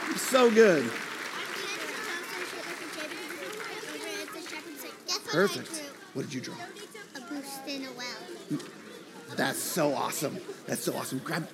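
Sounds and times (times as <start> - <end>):
people cheering: 0.0 - 6.1
audience clapping: 0.0 - 6.2
speech: 0.3 - 1.1, 5.3 - 11.5.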